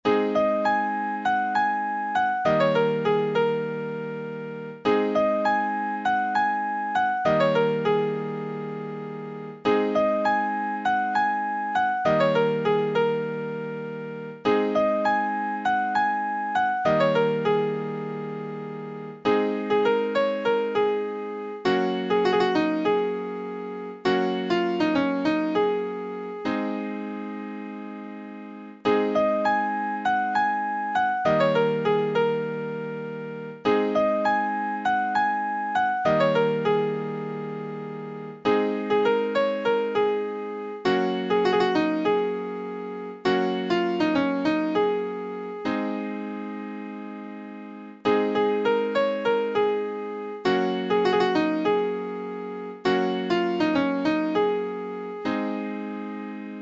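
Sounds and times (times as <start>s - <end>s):
piano: 0.0s - 56.6s.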